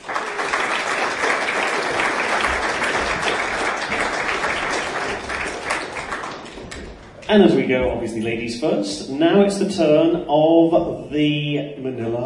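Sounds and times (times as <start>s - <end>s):
audience applause: 0.0s - 7.3s
speech: 7.3s - 12.2s.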